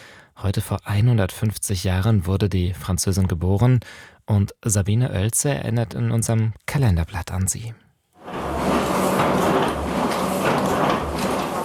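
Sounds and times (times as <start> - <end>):
speech: 0.4 - 7.8
printing presses rattling in Paris during the First World War: 8.2 - 11.6.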